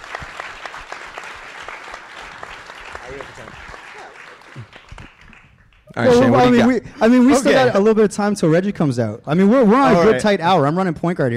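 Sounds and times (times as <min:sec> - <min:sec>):
crowd applauding: 0:00.0 - 0:06.7
speech: 0:03.1 - 0:03.8, 0:06.0 - 0:11.3.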